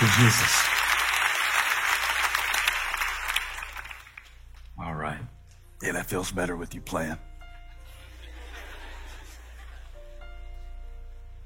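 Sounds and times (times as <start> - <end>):
audience clapping hands: 0.0 - 4.8
speech: 0.2 - 0.8, 5.8 - 7.3
laughter: 7.8 - 10.2.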